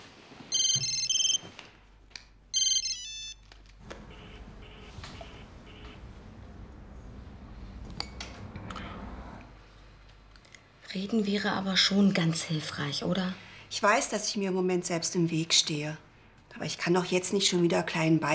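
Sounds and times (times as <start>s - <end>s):
mobile phone ringtone: 0.5s - 1.5s, 2.5s - 3.4s, 4.0s - 6.0s
speech: 11.0s - 16.0s, 16.6s - 18.3s.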